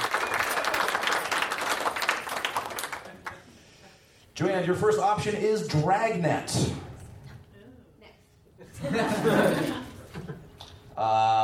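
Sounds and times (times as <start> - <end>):
crowd applauding: 0.0 - 3.6
speech: 4.4 - 6.9
laughter: 8.6 - 10.5.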